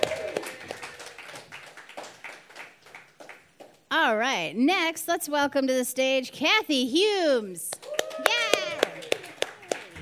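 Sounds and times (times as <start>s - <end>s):
audience applause: 0.0s - 3.8s, 7.8s - 10.0s
speech: 4.0s - 7.7s.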